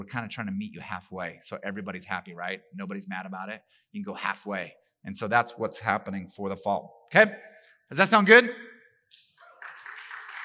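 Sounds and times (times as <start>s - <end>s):
speech: 0.0s - 9.3s
audience clapping: 9.1s - 10.4s.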